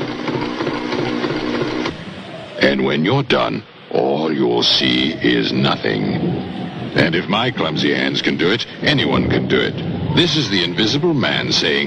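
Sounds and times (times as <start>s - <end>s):
sewing machine stitching a zipper: 0.0s - 2.0s
speech: 2.7s - 11.8s.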